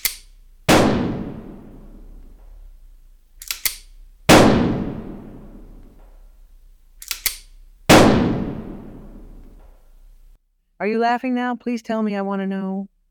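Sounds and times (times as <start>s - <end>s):
short mechanical clicks: 0.0s - 0.4s, 3.3s - 4.0s, 6.8s - 7.7s
.45 calibre gunshots fired into a recording studio ceiling: 0.0s - 2.8s, 3.4s - 6.2s, 7.0s - 9.9s
speech: 10.8s - 12.9s.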